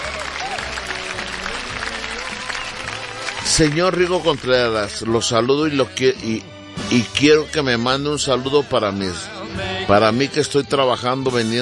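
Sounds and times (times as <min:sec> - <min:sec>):
crowd applauding: 0:00.0 - 0:06.0
speech: 0:03.5 - 0:11.6.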